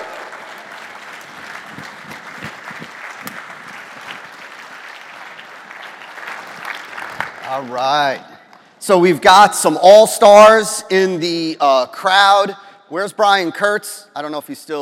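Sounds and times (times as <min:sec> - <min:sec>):
audience cheering: 0:00.0 - 0:02.4
audience applause: 0:00.0 - 0:08.0
speech: 0:07.6 - 0:14.8.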